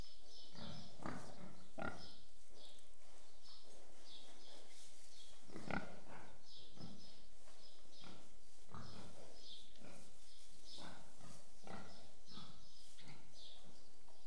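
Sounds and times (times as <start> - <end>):
pigs grunting and snorting in a shed: 0.4 - 2.7, 5.4 - 7.2, 7.9 - 13.8.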